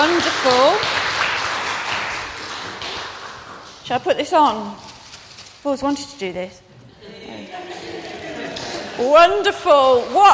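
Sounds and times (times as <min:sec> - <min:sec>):
round of applause: 0:00.0 - 0:03.7
speech: 0:03.9 - 0:04.9, 0:05.6 - 0:06.6, 0:09.0 - 0:10.3
laughter: 0:06.9 - 0:09.4.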